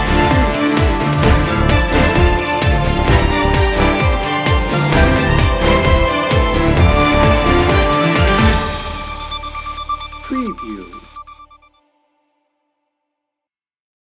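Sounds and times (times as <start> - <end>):
heroic power music: 0.0 - 11.0.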